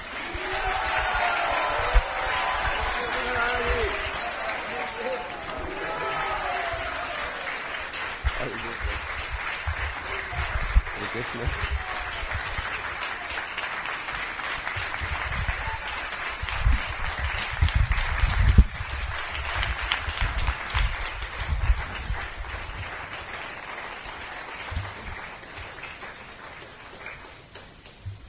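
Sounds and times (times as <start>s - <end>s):
scattered cheers: 0.0s - 9.0s, 9.8s - 13.8s, 14.8s - 16.9s
audience applause of welcome: 0.0s - 27.9s
voices: 0.2s - 9.1s, 10.0s - 13.5s.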